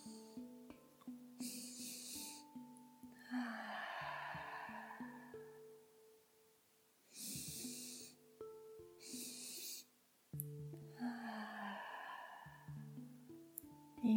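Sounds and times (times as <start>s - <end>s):
sustained soft music tones: 0.0s - 14.1s
breathing exercise inhaling in two steps then exhaling: 1.4s - 2.6s, 3.2s - 5.9s, 7.1s - 8.2s, 9.0s - 9.9s, 10.9s - 13.4s.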